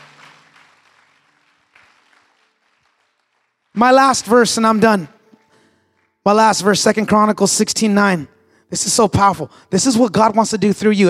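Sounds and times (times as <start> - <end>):
audience clapping hands: 0.0 - 6.7
speech: 3.8 - 5.2, 6.3 - 11.0.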